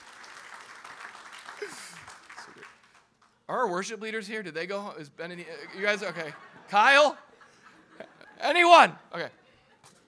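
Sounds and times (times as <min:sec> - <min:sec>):
audience clapping: 0:00.0 - 0:03.5
speech: 0:03.5 - 0:07.2, 0:08.4 - 0:09.4
laughter: 0:05.5 - 0:09.5.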